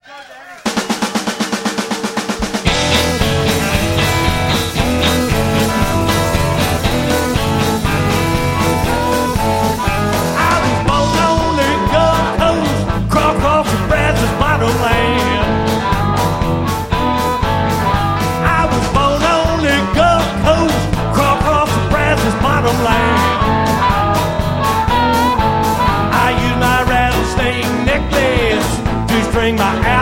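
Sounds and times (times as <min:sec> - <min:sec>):
Austin Texas blues music: 0:00.0 - 0:29.9.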